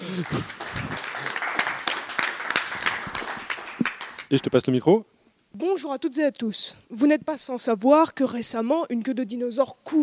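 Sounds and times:
audience applause: 0:00.0 - 0:04.6
speech: 0:00.2 - 0:00.6, 0:04.3 - 0:10.0.

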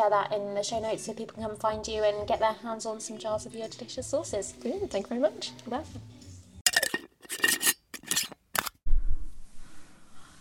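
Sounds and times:
speech: 0:00.0 - 0:06.2
scraping and rustling from preparing lunch in a kitchen: 0:06.7 - 0:08.8.

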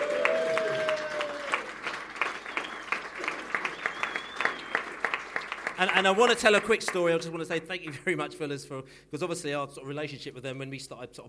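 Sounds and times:
crowd cheering: 0:00.0 - 0:06.2
speech: 0:05.8 - 0:11.2.

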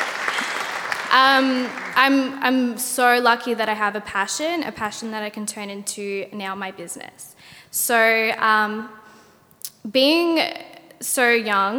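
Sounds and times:
audience applause: 0:00.0 - 0:02.1
speech: 0:01.1 - 0:09.0, 0:09.8 - 0:11.7.

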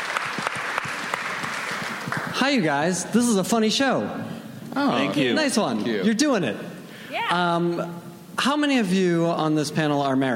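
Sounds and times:
audience applause: 0:00.0 - 0:02.6
speech: 0:02.4 - 0:06.7, 0:07.3 - 0:10.3.

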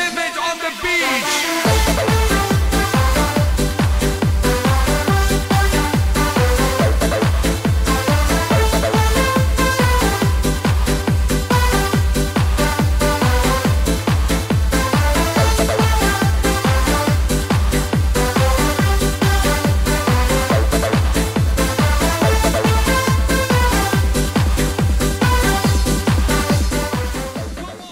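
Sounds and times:
dance track with four-on-the-floor kick drum, hi-hats and synths: 0:00.0 - 0:27.8.

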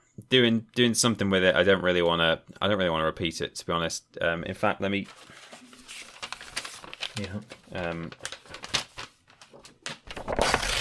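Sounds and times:
speech: 0:00.3 - 0:05.6, 0:07.2 - 0:08.4
paper ad script ripped up and crumpled: 0:05.1 - 0:10.7.

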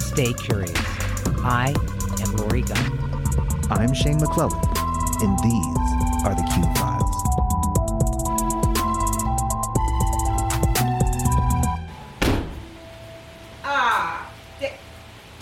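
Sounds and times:
musical passage: 0:00.0 - 0:15.1
speech: 0:00.2 - 0:07.0
short knock: 0:12.2 - 0:12.6
car door slamming shut: 0:12.2 - 0:12.7.

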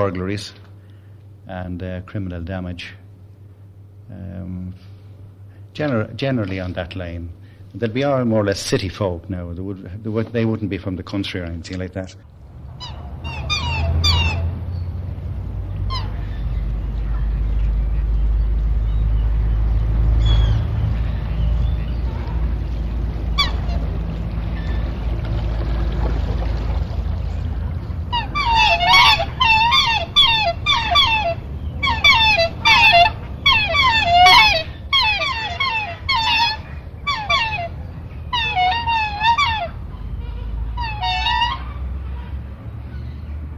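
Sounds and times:
speech: 0:00.0 - 0:00.7, 0:01.5 - 0:03.0, 0:04.1 - 0:04.9, 0:05.8 - 0:13.0
geese and ducks squabbling on a lake: 0:12.7 - 0:14.9, 0:15.6 - 0:43.1.

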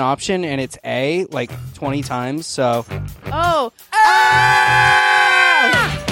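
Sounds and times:
speech: 0:00.0 - 0:05.0
group yelling as loud as possible: 0:03.9 - 0:06.0.

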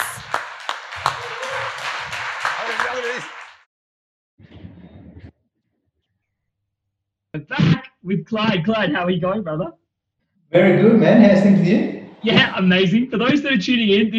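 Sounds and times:
round of applause: 0:00.0 - 0:03.7
speech: 0:07.4 - 0:09.8, 0:10.5 - 0:14.1.

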